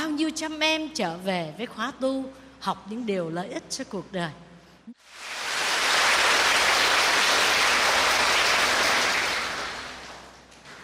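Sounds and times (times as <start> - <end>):
speech: 0.2 - 5.3
students clapping at a Buddhist retreat: 5.1 - 10.8.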